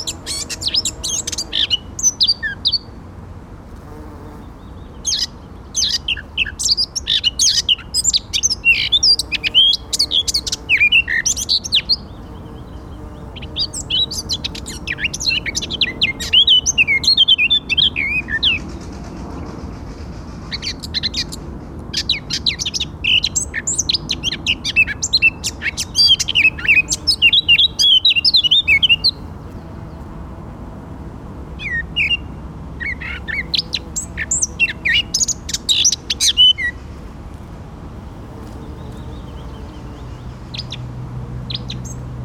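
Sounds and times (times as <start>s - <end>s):
Eurasian blackcap song: 0.0s - 2.9s, 4.4s - 18.8s, 20.5s - 30.1s, 31.6s - 36.8s, 41.5s - 42.0s.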